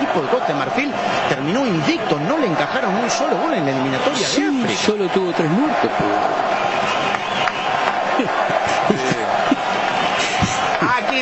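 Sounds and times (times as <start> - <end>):
commentator talking: 0.0 - 6.4, 10.7 - 11.2
football stadium crowd roaring during a match between Ecuador and Ivory Coast: 0.0 - 11.2
speech: 0.2 - 7.1
laughter: 8.0 - 10.8.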